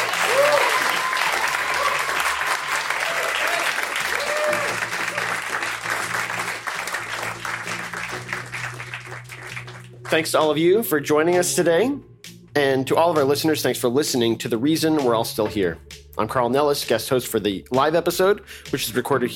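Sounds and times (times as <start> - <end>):
live audience applause: 0.0 - 10.4
speech: 10.1 - 19.3.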